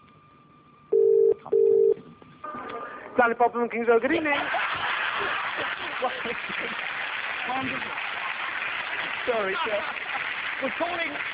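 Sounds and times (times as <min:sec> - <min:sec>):
telephone ringing tone on an outgoing call: 0:00.9 - 0:02.0
speech: 0:03.2 - 0:04.6, 0:07.5 - 0:08.1, 0:09.2 - 0:10.0, 0:10.6 - 0:11.3
laughter: 0:04.2 - 0:11.2.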